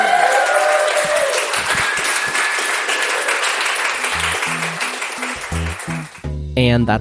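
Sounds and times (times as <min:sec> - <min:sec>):
audience at a live show recording in San Francisco applauding a guest: 0:00.0 - 0:06.3.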